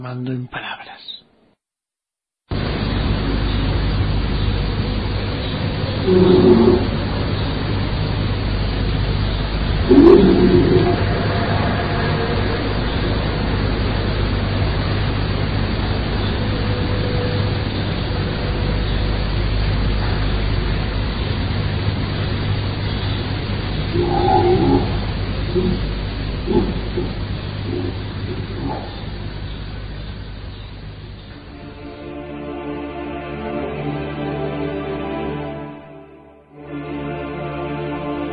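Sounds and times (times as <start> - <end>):
speech: 0.0 - 1.2, 6.1 - 6.9
tape recorder hiss: 0.0 - 1.3, 2.5 - 38.3
strange roars in a paranormal recording: 5.7 - 18.6, 19.6 - 30.0.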